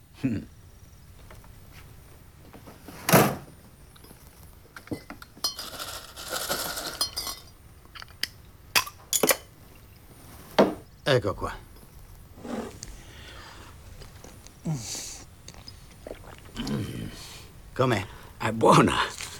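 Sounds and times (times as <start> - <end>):
quiet noise: 0.0 - 19.3
speech: 0.2 - 0.6, 11.1 - 11.6, 14.7 - 15.0, 17.8 - 19.1
ice-cold bottle of Miller Lite beer clinking: 4.8 - 9.5.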